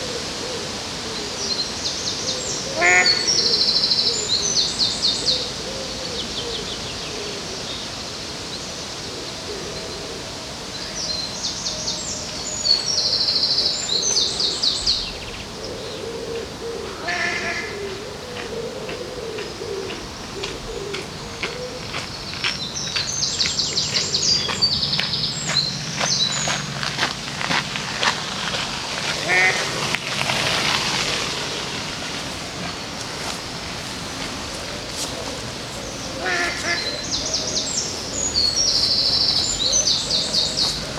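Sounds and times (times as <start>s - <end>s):
high bright bird calls: 0.0s - 27.6s, 29.1s - 40.9s
water wash along the river in Odense: 26.6s - 36.6s.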